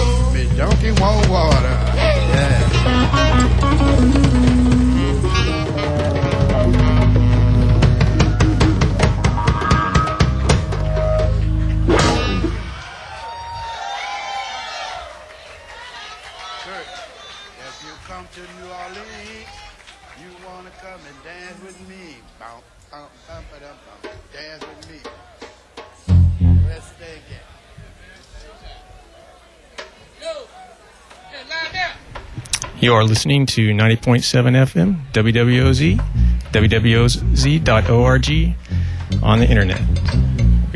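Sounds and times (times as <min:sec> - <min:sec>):
festival crowd chatter at outdoor stage: 0:00.0 - 0:40.7
loud thump: 0:11.8 - 0:12.8
shouts and whoops: 0:12.6 - 0:18.0
speech: 0:32.9 - 0:40.7.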